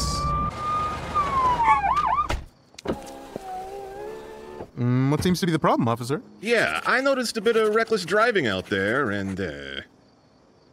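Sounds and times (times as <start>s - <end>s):
police car siren wailing and yelping: 0.0s - 2.4s
speech: 4.8s - 9.9s.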